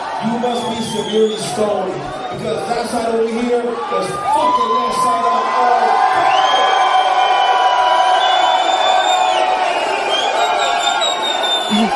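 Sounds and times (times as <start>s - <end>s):
loud cheering crowd: 0.0s - 11.9s
speech: 0.2s - 6.7s, 11.8s - 11.9s
shrill whistles from the crowd: 0.5s - 1.6s, 6.2s - 11.9s.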